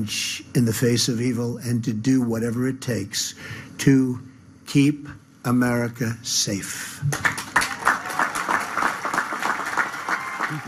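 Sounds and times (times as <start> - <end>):
speech: 0.0 - 7.4
audience applause: 7.1 - 10.6.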